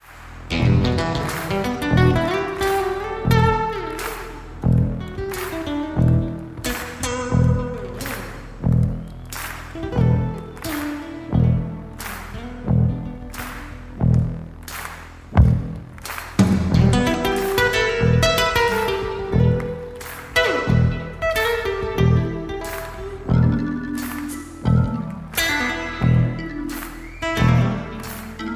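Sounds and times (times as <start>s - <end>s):
Gibson guitar: 0.0s - 28.5s.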